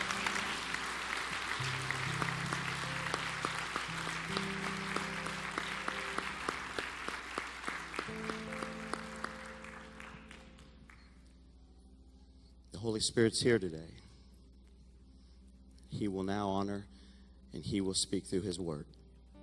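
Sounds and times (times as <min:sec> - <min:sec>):
audience applause: 0:00.0 - 0:10.8
organ or keyboard chords: 0:00.0 - 0:11.2
speech: 0:12.8 - 0:14.0, 0:16.0 - 0:16.9, 0:17.5 - 0:19.0.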